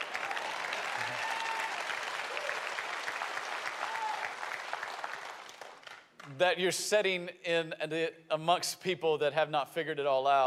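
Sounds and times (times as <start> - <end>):
congregation applauding during a church service: 0.0 - 6.4
speech: 6.4 - 10.4.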